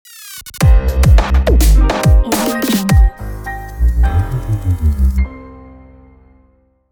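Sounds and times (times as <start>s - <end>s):
dub piano logo jingle: 0.6s - 6.2s.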